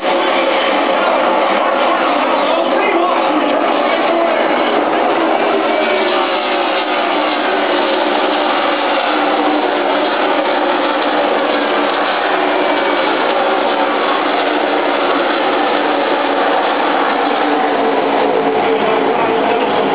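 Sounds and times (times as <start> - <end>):
NASCAR race car engines: 0.0 - 19.9.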